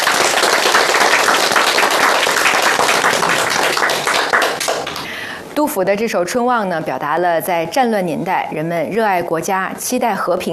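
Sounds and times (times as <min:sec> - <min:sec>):
group applause: 0:00.0 - 0:05.2
speech: 0:05.6 - 0:10.5.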